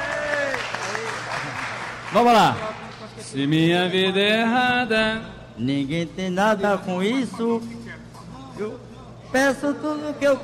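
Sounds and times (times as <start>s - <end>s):
audience applause: 0.0s - 3.0s
speech: 2.1s - 7.8s, 8.6s - 10.4s.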